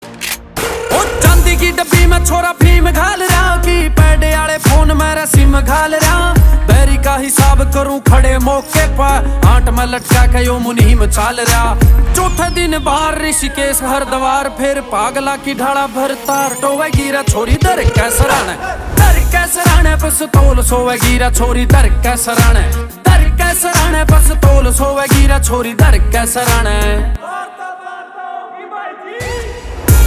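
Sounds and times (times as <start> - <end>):
Haryanvi folk song: 0.9 - 29.4.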